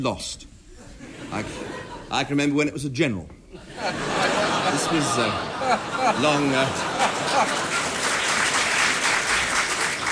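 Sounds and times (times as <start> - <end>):
speech: 0.0 - 0.5, 1.3 - 7.7
laughter: 0.8 - 2.4, 3.5 - 9.3
audience applause: 6.2 - 10.0.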